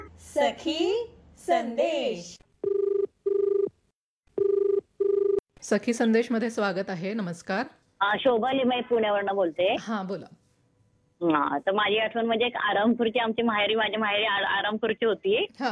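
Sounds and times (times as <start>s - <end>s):
speech: 0.4s - 2.4s, 5.7s - 10.4s, 11.2s - 15.6s
telephone ringing for an incoming call: 2.6s - 3.8s, 4.4s - 5.4s.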